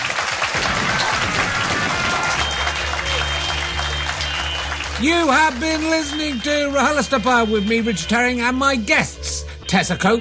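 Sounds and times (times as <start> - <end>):
audience applause: 0.0 - 7.7
speech: 5.0 - 10.1.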